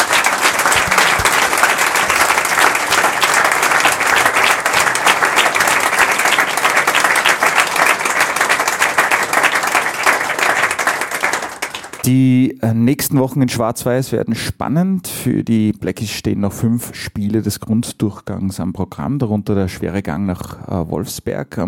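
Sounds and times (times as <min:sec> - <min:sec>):
applause: 0:00.0 - 0:12.2
speech: 0:12.1 - 0:21.6.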